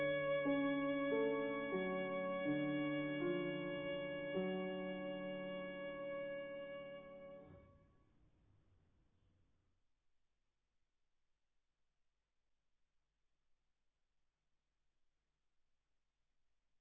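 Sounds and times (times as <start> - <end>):
violin: 0.0 - 7.5.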